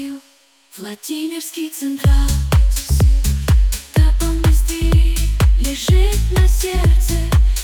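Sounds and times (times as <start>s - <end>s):
techno remix: 2.1s - 7.6s.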